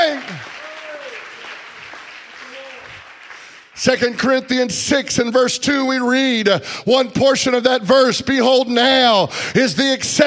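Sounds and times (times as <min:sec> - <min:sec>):
audience clapping: 0:00.0 - 0:04.5
speech: 0:03.8 - 0:10.2.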